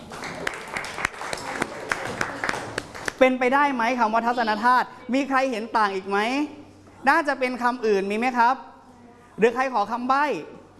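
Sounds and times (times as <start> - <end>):
classroom applause: 0.0 - 3.2
speech: 3.2 - 8.7, 9.4 - 10.6.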